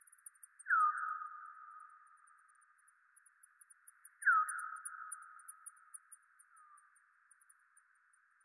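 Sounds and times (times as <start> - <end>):
bat echolocation calls: 0.0 - 2.8, 3.6 - 7.5.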